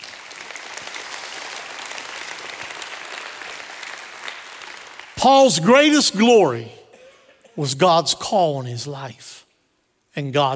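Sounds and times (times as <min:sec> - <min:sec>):
audience clapping: 0:00.0 - 0:06.6
speech: 0:05.2 - 0:06.8, 0:07.6 - 0:09.4, 0:10.2 - 0:10.5.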